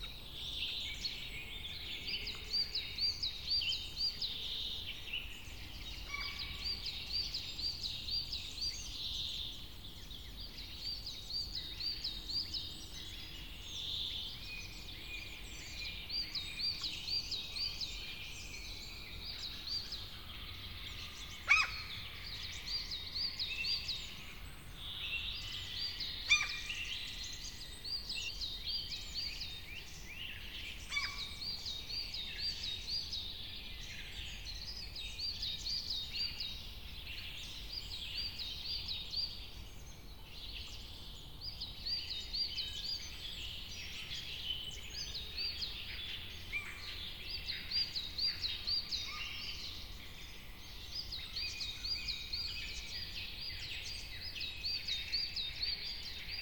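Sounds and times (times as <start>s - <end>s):
birds: 0.0s - 56.4s.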